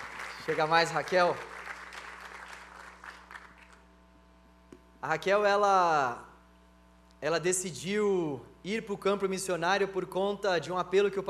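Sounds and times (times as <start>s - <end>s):
audience applause: 0.0s - 3.8s
speech: 0.5s - 1.5s, 5.0s - 6.3s, 7.2s - 11.2s.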